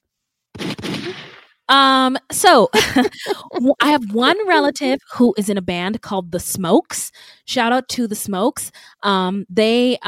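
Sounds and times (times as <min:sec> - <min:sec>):
gunshot sound effect: 0:00.6 - 0:01.6
speech: 0:01.1 - 0:10.0.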